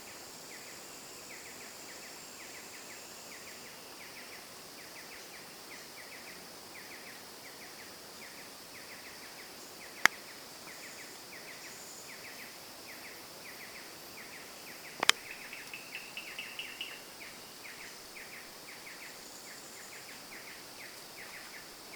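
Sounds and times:
insect chorus buzzing: 0.0s - 21.9s
bird chirping: 13.6s - 20.6s
sharp clicks: 15.0s - 15.3s.

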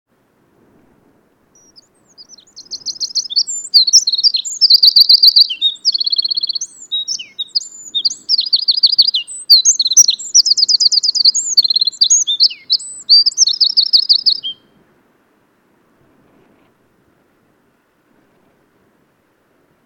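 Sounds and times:
Eurasian wren singing: 1.6s - 14.7s.

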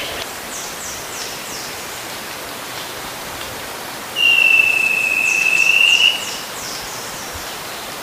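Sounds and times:
bird long falling whistle: 4.2s - 6.5s.

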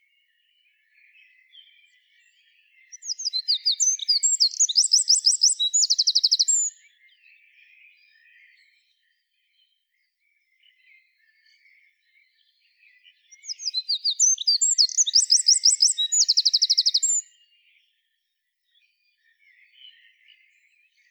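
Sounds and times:
Eurasian wren singing: 2.9s - 6.8s, 13.3s - 17.4s
faint chirps: 3.0s - 6.8s, 13.4s - 17.3s.

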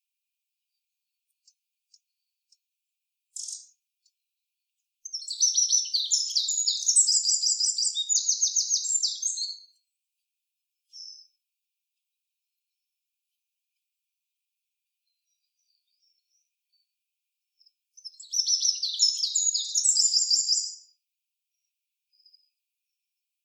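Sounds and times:
Eurasian wren singing trills: 3.4s - 3.8s, 5.0s - 9.7s, 18.0s - 20.9s.

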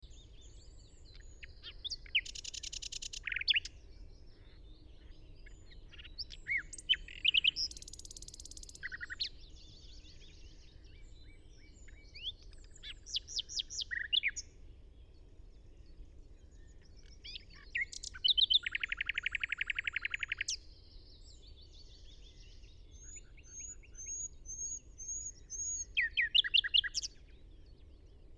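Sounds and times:
Common nightingale song: 0.0s - 28.0s
low background hiss: 0.0s - 28.3s.

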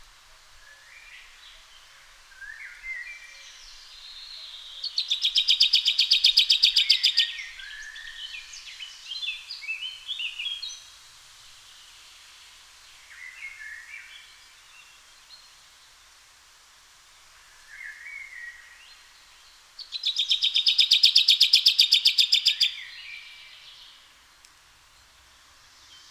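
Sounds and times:
common chaffinch Fringilla coelebs singing: 2.4s - 10.8s, 19.4s - 24.0s.

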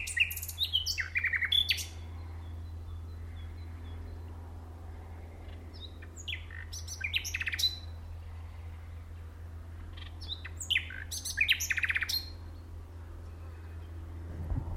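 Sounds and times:
common nightingale song: 0.0s - 4.3s, 5.8s - 8.0s, 9.8s - 12.6s
low hum: 0.0s - 14.7s.

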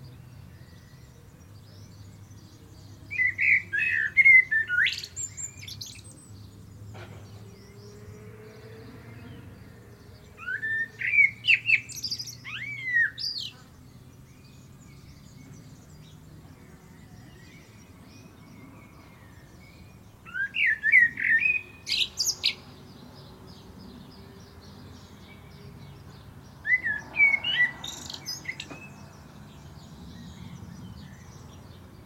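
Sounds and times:
common blackbird song: 0.0s - 32.0s.

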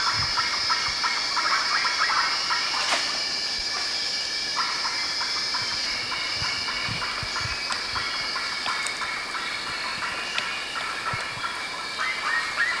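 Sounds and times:
noisy flock of birds calling: 0.0s - 12.7s.

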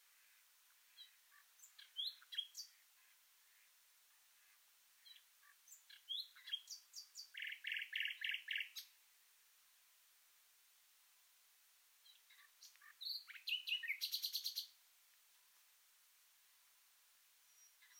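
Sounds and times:
common nightingale singing: 0.9s - 3.1s, 5.0s - 9.0s, 12.0s - 14.8s, 17.4s - 17.9s.

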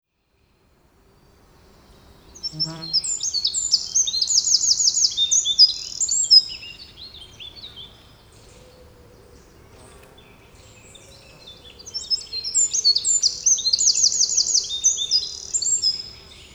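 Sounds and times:
Eurasian wren Troglodytes troglodytes trilling: 2.2s - 16.5s.

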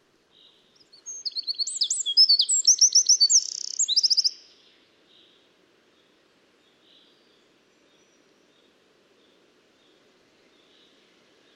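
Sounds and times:
Eurasian wren singing loud trills: 0.8s - 4.5s.

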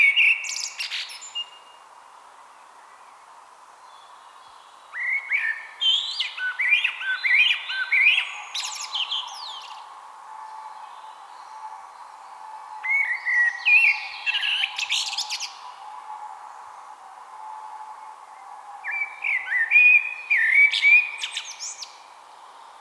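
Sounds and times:
Eurasian blackbird singing: 5.0s - 9.9s, 10.7s - 15.8s, 18.0s - 22.1s.

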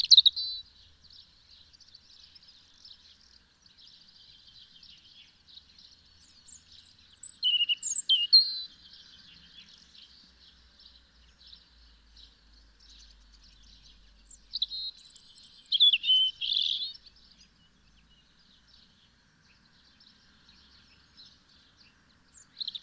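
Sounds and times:
European robin warbling song: 6.2s - 8.8s, 12.8s - 17.4s, 22.3s - 22.8s.

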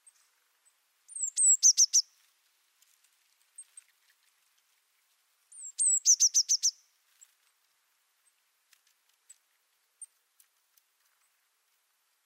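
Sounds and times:
Eurasian blue tit Cyanistes caeruleus whistles and trill: 1.1s - 2.1s, 5.5s - 6.8s.

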